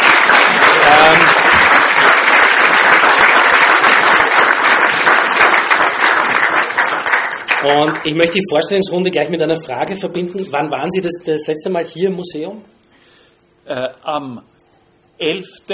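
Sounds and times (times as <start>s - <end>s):
audience welcome applause: 0.0s - 8.7s
speech: 7.6s - 12.8s, 13.6s - 14.5s, 15.2s - 15.7s.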